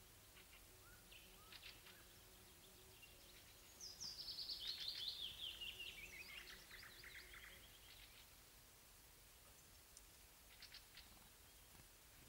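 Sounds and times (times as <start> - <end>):
nightingale singing: 0.2 - 8.4.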